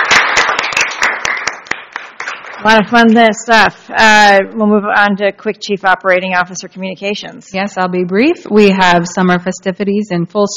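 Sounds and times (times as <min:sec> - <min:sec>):
few people clapping at a council meeting after a vote passes: 0:00.0 - 0:03.5
speech: 0:02.6 - 0:10.5.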